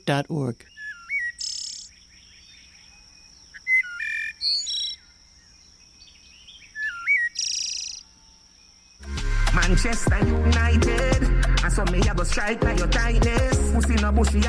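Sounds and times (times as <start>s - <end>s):
speech: 0.0s - 0.8s, 9.7s - 14.4s
bird song: 0.0s - 9.0s.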